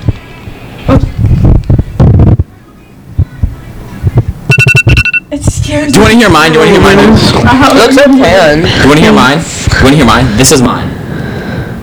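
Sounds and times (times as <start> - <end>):
loud bursty voices and commotion: 1.7 - 11.3
bright electronic phone alarm ringtone: 4.5 - 5.3
speech: 5.7 - 11.0.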